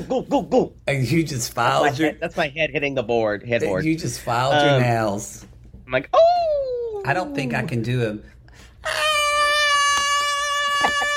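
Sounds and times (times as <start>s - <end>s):
speech: 0.0s - 9.0s
high-pitched chandelier scream: 8.8s - 11.1s.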